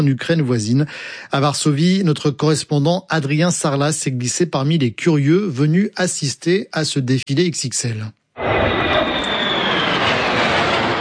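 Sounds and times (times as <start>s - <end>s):
speech: 0.0s - 8.2s
F-16 and F-35 fighter jets flying overhead: 8.4s - 10.9s.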